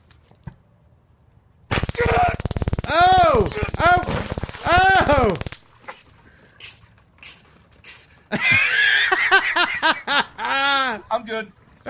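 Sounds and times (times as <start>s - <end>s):
stun gun being switched on, electric crackle: 1.7s - 5.8s
people shouting: 1.9s - 5.4s
speech: 5.1s - 5.5s
laughter: 8.3s - 11.1s.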